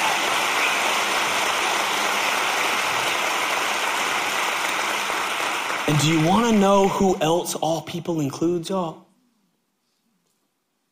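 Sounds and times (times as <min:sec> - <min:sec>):
audience clapping: 0:00.0 - 0:07.4
speech: 0:05.9 - 0:09.0.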